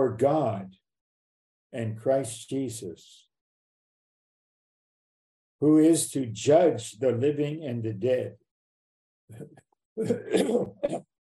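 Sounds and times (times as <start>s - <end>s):
speech: 0.0s - 0.8s, 1.7s - 3.3s, 5.6s - 8.4s, 9.3s - 11.1s
throat clearing to clear phlegm: 9.3s - 11.1s.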